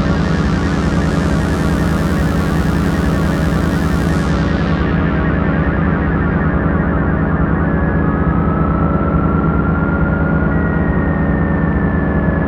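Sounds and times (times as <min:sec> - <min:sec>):
Crumar DS2 synthesizer: 0:00.0 - 0:12.4.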